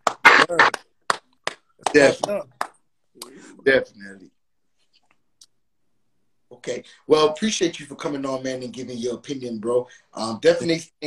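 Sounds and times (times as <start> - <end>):
soundboard clapping sound effect: 0.0 - 2.8
speech: 0.5 - 0.8, 2.0 - 2.6, 3.2 - 4.4, 6.6 - 11.0.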